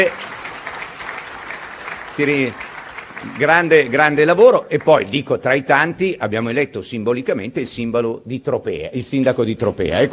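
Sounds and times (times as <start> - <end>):
speech: 0.0 - 0.3, 2.2 - 10.1
audience applause at a political rally: 0.0 - 6.0.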